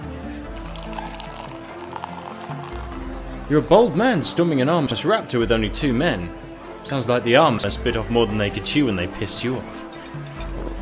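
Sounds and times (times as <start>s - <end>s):
drink pouring into a glass: 0.4s - 4.0s
speech: 3.5s - 10.2s.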